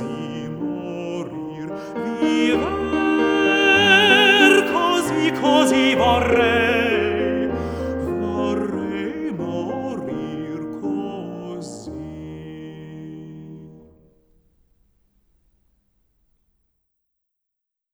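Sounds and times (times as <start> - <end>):
polyphonic Italian songs: 0.0 - 14.0.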